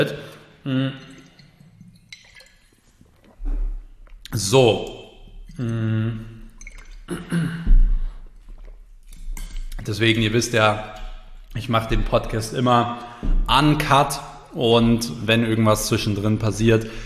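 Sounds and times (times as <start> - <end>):
speech: 0.0 - 1.1, 4.3 - 5.0, 5.6 - 6.3, 7.1 - 7.8, 9.8 - 11.0, 11.6 - 17.0
person taking a sip of water: 0.6 - 9.9.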